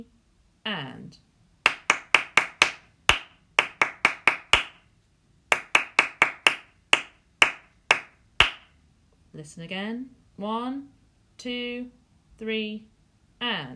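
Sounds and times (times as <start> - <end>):
speech: 0.7 - 1.3, 9.4 - 13.7
hand clapping: 1.6 - 4.8, 5.5 - 8.8.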